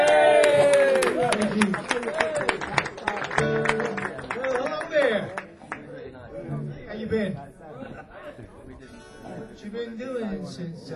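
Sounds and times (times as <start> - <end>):
audience applause and cheering: 0.0 - 5.5
laughter: 7.6 - 8.8.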